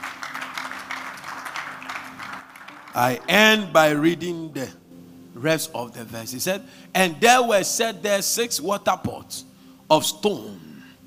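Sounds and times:
audience clapping in a large room: 0.0s - 3.8s
speech: 2.9s - 4.8s, 5.4s - 10.7s.

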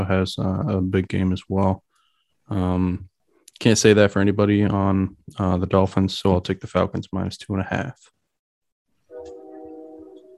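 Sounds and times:
speech: 0.0s - 1.9s, 2.5s - 8.2s
passing train horn: 9.1s - 10.3s.

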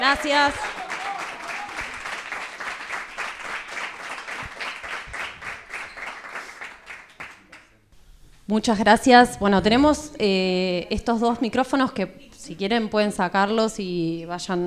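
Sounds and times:
audience applause: 0.0s - 7.7s
speech: 0.1s - 0.8s, 8.5s - 14.6s.

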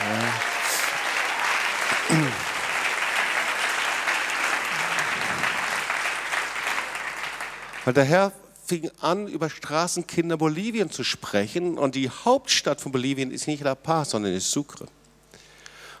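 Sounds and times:
audience applause: 0.0s - 8.1s
speech: 7.9s - 15.0s.

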